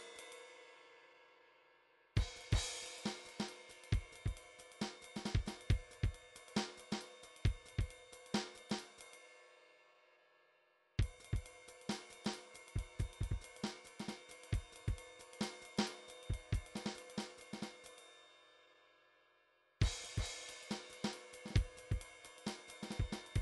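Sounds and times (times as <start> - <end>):
midi drums: 2.2 - 7.9, 11.0 - 17.7, 19.8 - 23.3.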